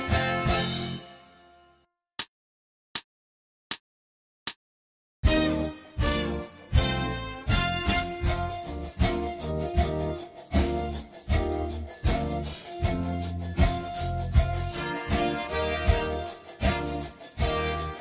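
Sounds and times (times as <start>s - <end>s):
celebratory music: 0.0s - 1.4s, 5.2s - 17.9s.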